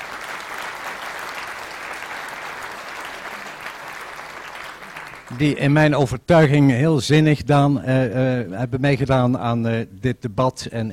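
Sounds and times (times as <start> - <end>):
audience applause: 0.0 - 5.4
speech: 5.3 - 10.9.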